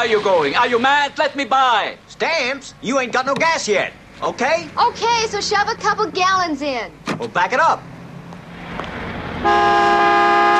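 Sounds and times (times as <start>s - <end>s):
speech: 0.0s - 7.9s, 8.8s - 10.1s
car horn at a gas station pump line honking: 9.4s - 10.5s.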